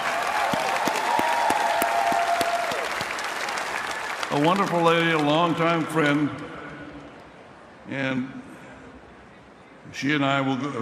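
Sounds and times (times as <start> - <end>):
crowd applauding: 0.0 - 6.4
speech: 4.4 - 6.6, 7.9 - 8.5, 9.9 - 10.8.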